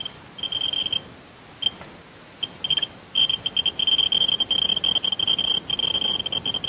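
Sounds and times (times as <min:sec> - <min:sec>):
Geiger counter ticking: 0:00.0 - 0:01.0, 0:02.4 - 0:06.6.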